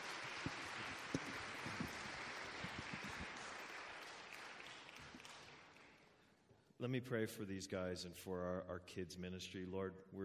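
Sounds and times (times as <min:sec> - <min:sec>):
audience applause: 0:00.0 - 0:06.0
speech: 0:06.8 - 0:10.2.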